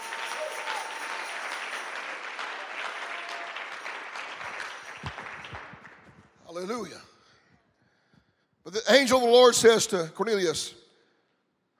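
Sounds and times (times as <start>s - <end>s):
audience clapping hands: 0.0s - 7.0s
speech: 6.6s - 7.1s, 8.7s - 10.8s.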